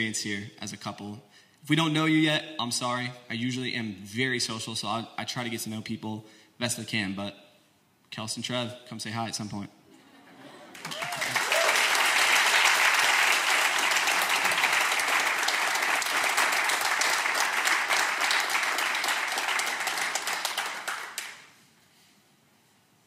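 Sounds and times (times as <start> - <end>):
speech: 0.0 - 7.4, 8.1 - 9.8
audience applause: 10.7 - 21.5.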